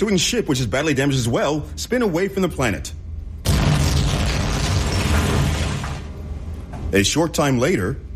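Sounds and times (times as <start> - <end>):
speech: 0.0 - 3.0, 6.9 - 8.1
spaceship crash impact explosion: 3.4 - 6.0
debris rattling: 3.5 - 6.1.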